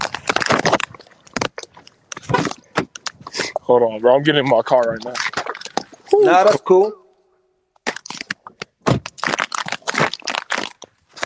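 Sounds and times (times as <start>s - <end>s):
plastic gummy bear packet crinkling: 0.0s - 3.4s, 7.9s - 11.2s
speech: 3.7s - 5.3s, 6.1s - 7.0s.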